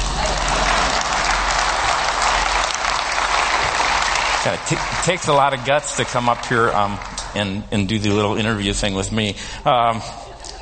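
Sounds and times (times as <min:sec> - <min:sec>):
audience applause: 0:00.0 - 0:07.7
speech: 0:04.4 - 0:10.2.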